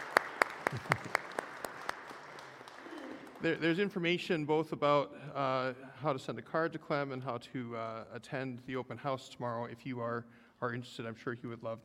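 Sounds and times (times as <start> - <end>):
sparse audience applause: 0.0 - 3.7
speech: 0.7 - 1.2, 3.4 - 11.8.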